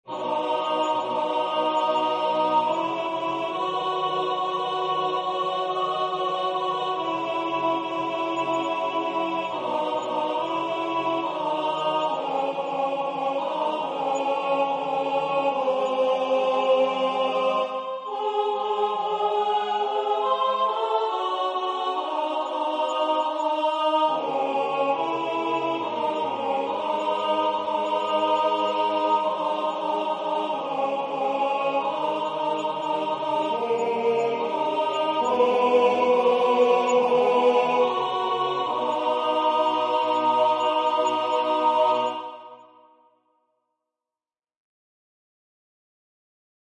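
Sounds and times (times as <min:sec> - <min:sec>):
alto voice singing: 0:00.1 - 0:42.8.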